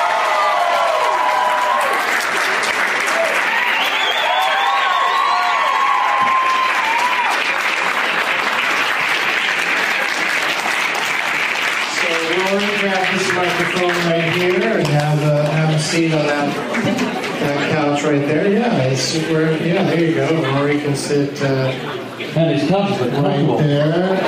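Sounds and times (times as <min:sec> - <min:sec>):
comedy audience applauding and cheering: 0:00.0 - 0:18.2
audience whistles: 0:03.6 - 0:05.6
speech: 0:13.6 - 0:15.2, 0:15.9 - 0:24.2.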